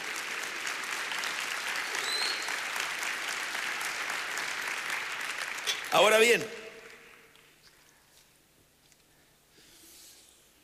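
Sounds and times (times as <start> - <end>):
people clapping: 0.0 - 7.9
speech: 5.9 - 6.6.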